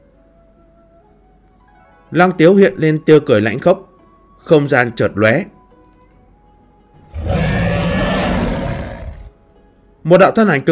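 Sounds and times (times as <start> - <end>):
speech: 2.1 - 5.6, 10.0 - 10.6
giant beast's earth-shaking roar: 7.1 - 9.3.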